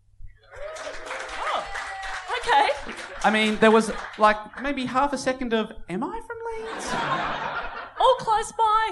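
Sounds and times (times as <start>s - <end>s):
audience applause: 0.5s - 5.0s
laughter: 2.4s - 4.6s, 6.6s - 8.3s
speech: 3.2s - 7.5s, 8.2s - 8.9s.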